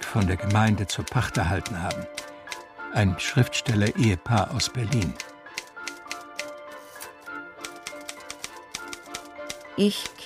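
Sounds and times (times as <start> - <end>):
typewriter ratcheting mechanism clattering as a sheet of paper is drawn out: 0.0 - 2.6, 4.3 - 6.6, 7.6 - 10.2
speech: 0.1 - 2.3, 2.9 - 5.3, 9.8 - 10.2.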